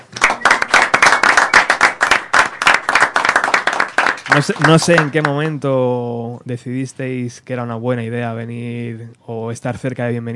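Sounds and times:
audience applause: 0.0 - 5.6
speech: 4.4 - 10.3.

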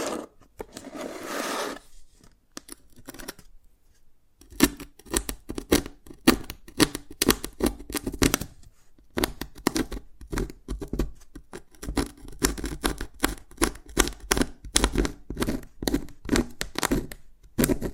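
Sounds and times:
soft scraping of dalgona candy: 0.0 - 2.3
dalgona candy being tapped and cracked: 4.4 - 8.5, 9.1 - 17.9.

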